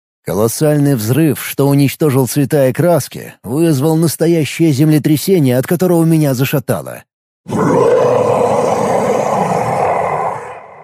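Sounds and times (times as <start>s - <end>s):
speech: 0.2s - 8.1s
dragon roaring in pain and rage: 7.5s - 10.8s.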